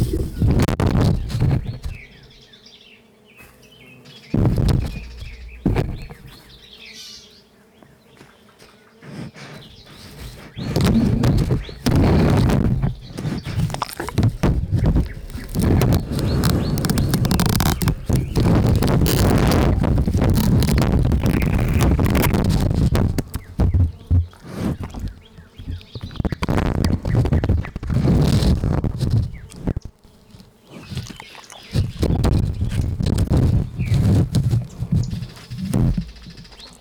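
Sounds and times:
bear biting microphone windscreen: 0:00.0 - 0:02.4, 0:04.4 - 0:06.7, 0:09.1 - 0:36.7.

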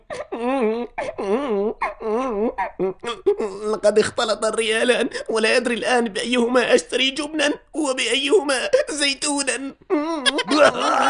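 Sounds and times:
young boy crying: 0:00.0 - 0:04.0, 0:08.3 - 0:11.0
speech: 0:02.8 - 0:11.0.

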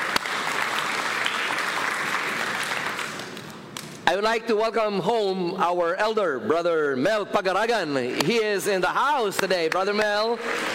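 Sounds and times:
church congregation clapping after a prayer: 0:00.0 - 0:04.0, 0:09.1 - 0:10.7
speech: 0:04.1 - 0:10.7.

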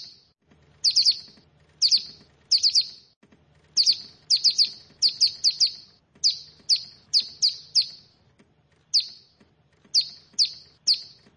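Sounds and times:
bar-winged prinia giving high sharp down-slurred chirps: 0:00.0 - 0:08.2, 0:08.9 - 0:11.3.

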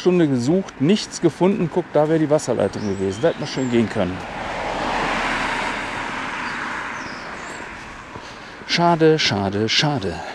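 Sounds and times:
speech: 0:00.0 - 0:04.4, 0:08.8 - 0:10.3
car driving past: 0:02.8 - 0:08.7.

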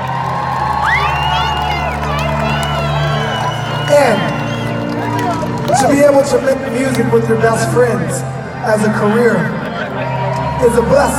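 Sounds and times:
whoops and shouts from concert crowd: 0:00.0 - 0:06.0
large concert crowd cheering: 0:00.0 - 0:08.0, 0:09.0 - 0:11.1
speech: 0:05.8 - 0:09.6, 0:10.6 - 0:11.1.

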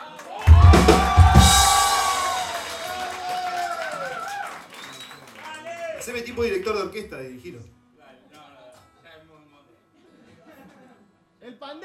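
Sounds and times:
audience clapping after one person starts: 0:00.0 - 0:07.0
speech: 0:06.3 - 0:07.8
laughter: 0:10.0 - 0:11.1.

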